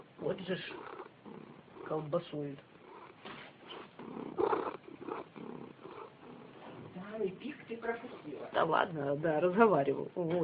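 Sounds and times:
cat purring: 0.0 - 10.4
speech: 0.3 - 0.9, 1.9 - 2.7, 7.2 - 10.4.

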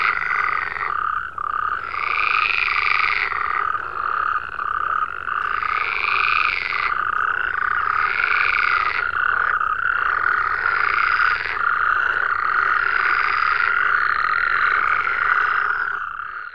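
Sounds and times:
frogs croaking in a dense chorus: 0.0 - 16.5.

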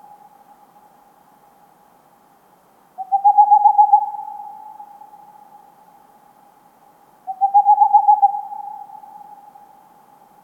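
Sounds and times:
Tengmalm's owl song of rapid pulsed low hoots: 3.0 - 5.5, 7.3 - 9.8.

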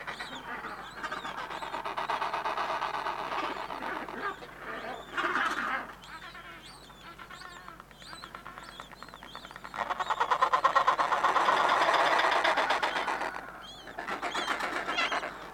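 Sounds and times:
Adélie penguin calls: 0.2 - 8.9, 9.8 - 15.5.

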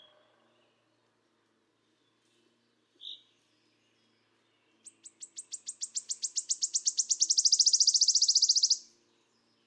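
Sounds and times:
Phylloscopus sibilatrix wood warbler buzzy shivering trill: 5.3 - 8.8.

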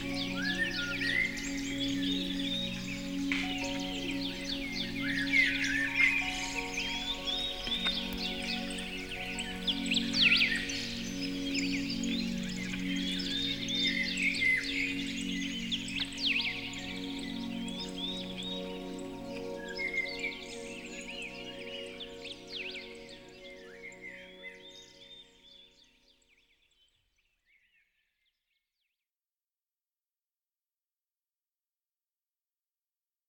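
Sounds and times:
birds chirping and whistling: 0.0 - 25.7
gentle sustained music: 0.0 - 26.7.

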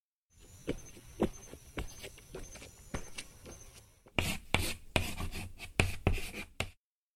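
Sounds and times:
word being written on a board: 4.1 - 6.8.

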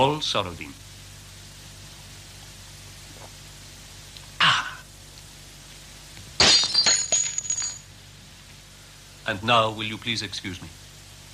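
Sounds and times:
speech: 0.0 - 0.8, 9.3 - 10.8
drinking glass dashed to the ground, shattering: 6.4 - 7.9.

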